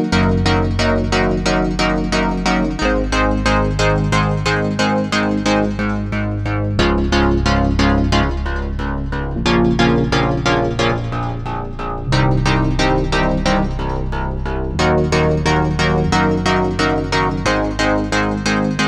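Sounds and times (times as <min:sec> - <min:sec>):
chord sequence playing: 0:00.1 - 0:18.7.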